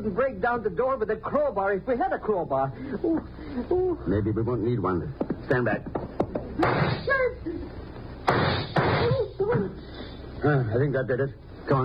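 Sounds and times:
speech: 0.0 - 6.0, 6.6 - 11.8
gunshot fired at a door lock: 6.6 - 7.1, 8.3 - 9.2.

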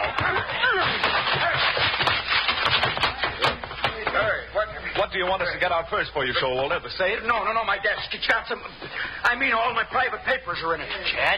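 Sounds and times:
laughter: 0.0 - 2.0, 7.9 - 9.3
wooden door being battered and broken down: 0.0 - 4.2
speech: 5.2 - 11.3.

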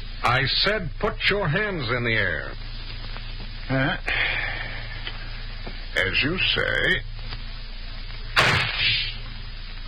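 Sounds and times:
speech: 0.3 - 2.7, 3.7 - 4.3, 5.9 - 7.1
gunshot: 8.3 - 9.0.

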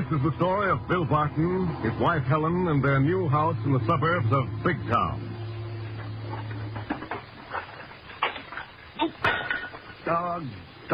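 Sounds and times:
low steady hum: 0.0 - 10.9
speech: 0.1 - 5.3, 10.1 - 10.9
dishes clinking and clattering in a sink while being washed: 9.2 - 9.8.

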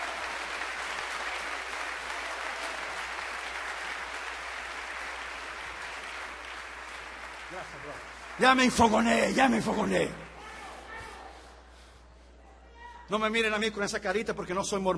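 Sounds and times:
audience applauding: 0.0 - 10.4
speech: 7.5 - 10.2, 13.1 - 14.9.

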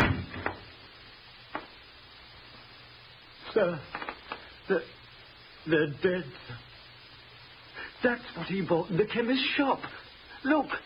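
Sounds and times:
door being shut: 0.0 - 0.6
speech: 3.6 - 4.0, 4.7 - 5.0, 5.6 - 6.7, 8.0 - 10.8.

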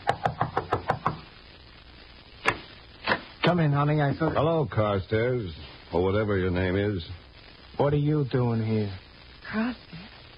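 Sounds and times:
knocking on a door: 0.0 - 1.2
speech: 3.5 - 7.2, 7.8 - 9.9.

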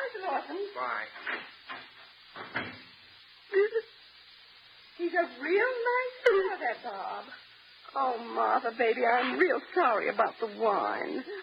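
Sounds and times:
speech: 0.1 - 1.6, 5.1 - 11.4
wooden front door closing: 2.4 - 2.9.

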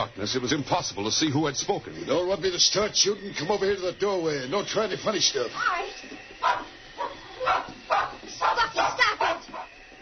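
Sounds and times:
speech: 0.1 - 6.1
small dog barking: 6.4 - 9.7.

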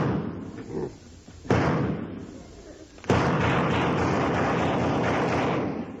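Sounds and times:
heavy gunshot blasts aimed at a fly crawling on a wall: 0.0 - 0.4, 1.5 - 2.3, 3.1 - 5.9.

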